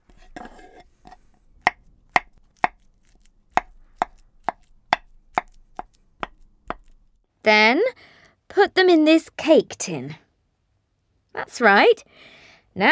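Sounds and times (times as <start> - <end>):
knife slicing bananas on a cutting board: 0.1 - 7.2
speech: 7.4 - 8.0, 8.6 - 10.2, 11.4 - 12.8.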